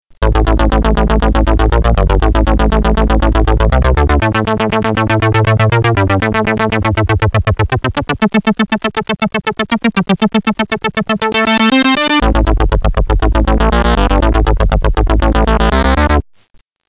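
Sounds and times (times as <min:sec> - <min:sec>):
synth: 0:00.2 - 0:16.2.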